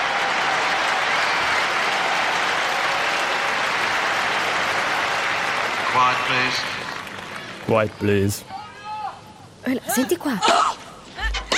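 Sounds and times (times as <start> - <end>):
tennis stadium crowd applauding: 0.0 - 8.2
speech: 6.0 - 6.8, 7.7 - 8.6, 9.6 - 10.7.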